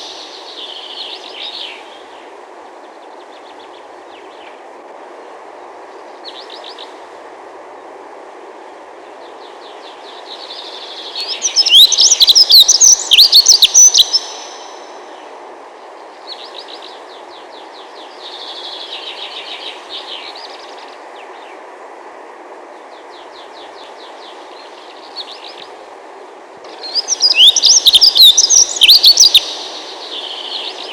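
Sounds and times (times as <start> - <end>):
dunnock calling: 11.4 - 14.8, 26.8 - 29.8.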